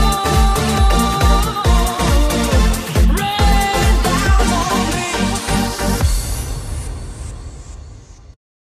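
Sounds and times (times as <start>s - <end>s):
disco music at 137 BPM: 0.0s - 6.4s.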